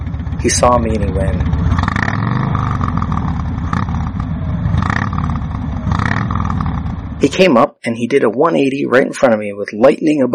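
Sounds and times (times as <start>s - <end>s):
motorcycle engine revving: 0.0s - 7.5s
speech: 0.4s - 1.6s, 7.2s - 10.3s.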